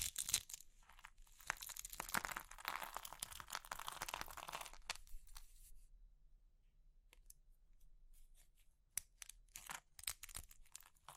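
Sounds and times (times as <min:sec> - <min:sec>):
crushing soap: 0:00.0 - 0:05.1, 0:09.0 - 0:11.1.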